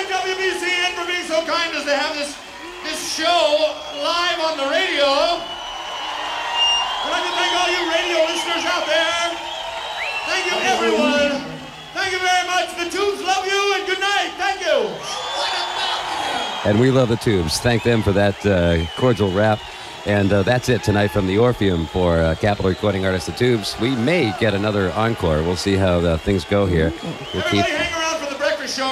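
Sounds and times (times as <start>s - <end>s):
concert crowd cheering wildly: 0.0s - 28.9s
speech: 1.4s - 5.6s, 10.3s - 15.2s, 16.6s - 28.9s.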